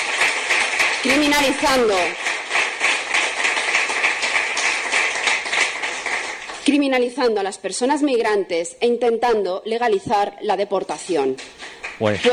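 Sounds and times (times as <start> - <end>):
sparse applause: 0.0 - 6.8, 10.9 - 12.3
speech: 1.0 - 2.2, 6.6 - 12.3.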